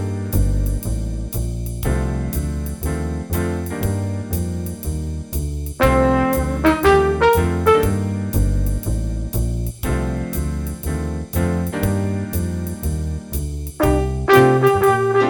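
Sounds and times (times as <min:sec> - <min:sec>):
jazz improvisation in C minor with jazz rhythms: 0:00.0 - 0:15.2
trumpet: 0:05.8 - 0:08.5, 0:13.8 - 0:15.2.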